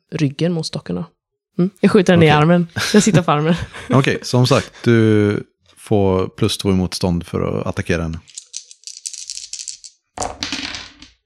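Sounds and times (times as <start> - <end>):
speech: 0.1 - 8.4
laughter: 2.2 - 5.4
dice being shaken and rolled: 8.1 - 11.2.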